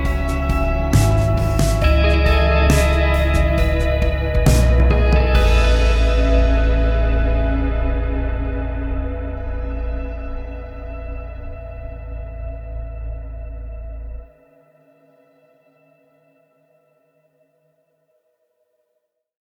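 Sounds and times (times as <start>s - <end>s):
echoing guitars: 0.0s - 14.3s.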